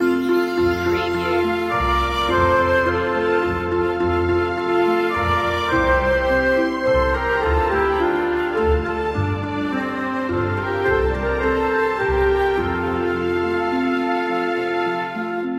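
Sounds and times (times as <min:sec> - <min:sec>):
orchestral music loop: 0:00.0 - 0:15.5.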